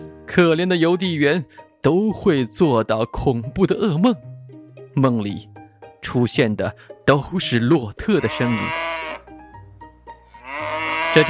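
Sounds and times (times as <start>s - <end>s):
speech: 0.3s - 4.3s, 5.0s - 9.0s
cow mooing: 8.0s - 9.3s, 10.3s - 11.2s.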